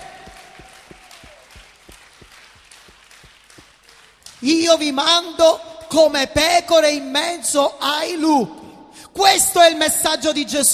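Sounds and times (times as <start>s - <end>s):
crowd applause: 0.0s - 4.5s
speech: 4.4s - 8.6s, 9.2s - 10.7s.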